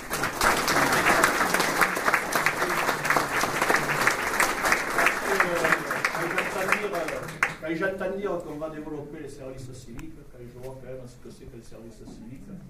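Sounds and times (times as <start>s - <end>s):
audience applause: 0.0s - 7.7s
speech: 7.8s - 12.6s.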